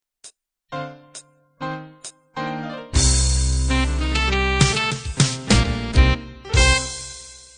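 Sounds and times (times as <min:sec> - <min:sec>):
cool jazz ending: 0:02.4 - 0:07.5.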